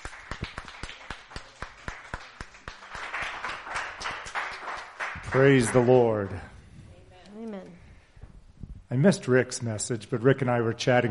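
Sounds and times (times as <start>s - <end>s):
church congregation clapping: 0.0s - 6.5s
speech: 5.3s - 6.5s, 8.9s - 11.0s.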